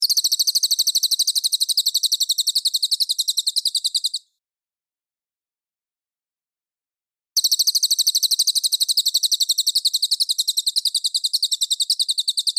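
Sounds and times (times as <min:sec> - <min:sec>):
mangrove whistler song: 0:00.0 - 0:04.3, 0:07.4 - 0:12.5.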